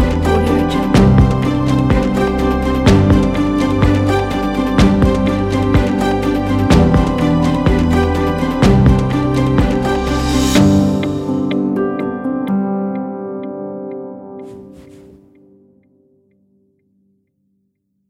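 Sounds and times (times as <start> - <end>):
beautiful inspiring cinematic music: 0.0 - 13.5, 14.4 - 15.4.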